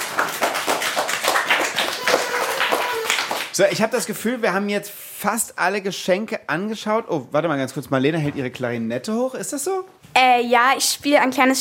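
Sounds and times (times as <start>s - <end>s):
small group applauding: 0.0s - 3.8s
speech: 3.6s - 11.5s.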